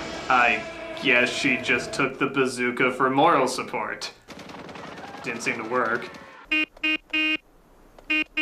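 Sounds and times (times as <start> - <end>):
speech: 0.3 - 4.4, 5.2 - 7.4
horn honking Morse code: 6.4 - 7.4, 8.1 - 8.4.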